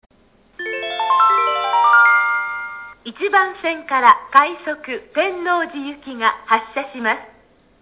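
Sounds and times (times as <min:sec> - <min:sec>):
rapid train at Tennoji station in Wakayama: 0:00.5 - 0:06.6.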